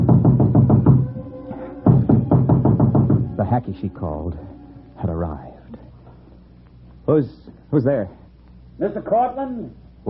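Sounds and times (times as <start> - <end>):
knock on a door: 0.0 - 1.1, 1.9 - 3.4
speech: 3.5 - 5.5, 7.1 - 8.2, 8.8 - 10.0.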